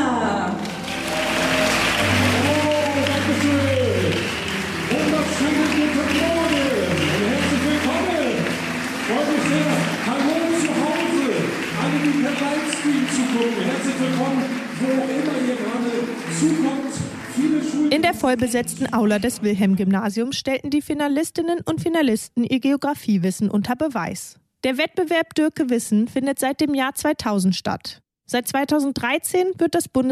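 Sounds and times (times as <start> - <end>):
audience applause: 0.6 - 19.4
speech: 18.3 - 30.1.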